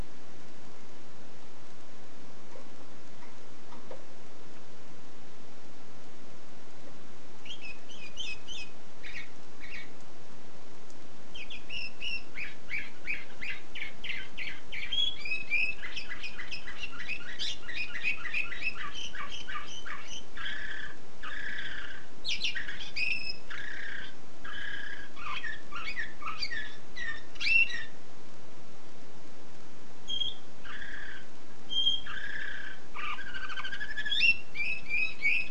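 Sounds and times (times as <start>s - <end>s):
canary singing: 7.4s - 10.1s, 11.3s - 28.0s, 30.0s - 35.5s.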